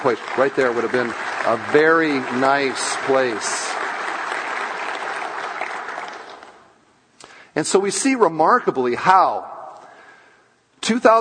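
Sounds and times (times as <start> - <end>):
speech: 0.0 - 3.8, 7.6 - 9.6, 10.9 - 11.1
audience applause: 0.0 - 6.7.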